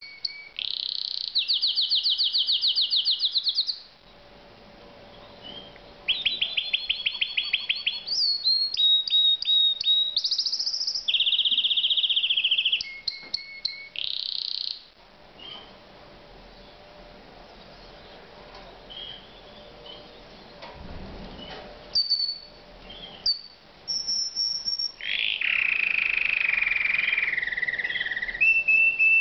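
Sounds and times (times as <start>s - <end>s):
canary trilling: 0.0s - 3.8s, 5.2s - 14.8s, 22.0s - 29.1s.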